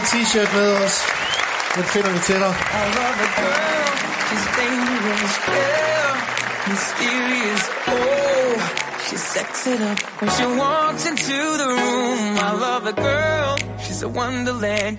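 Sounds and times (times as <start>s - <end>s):
audience applause: 0.0s - 11.6s
speech: 0.1s - 14.9s.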